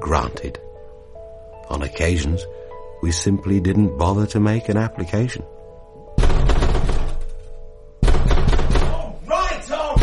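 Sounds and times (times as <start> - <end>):
speech: 0.0 - 0.7, 1.7 - 5.6
heavy pounding on a door: 6.2 - 7.3, 8.0 - 9.1.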